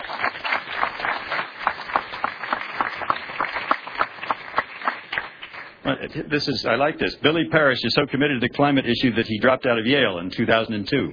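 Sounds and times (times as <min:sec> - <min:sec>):
audience applause: 0:00.0 - 0:05.8
speech: 0:05.9 - 0:11.1.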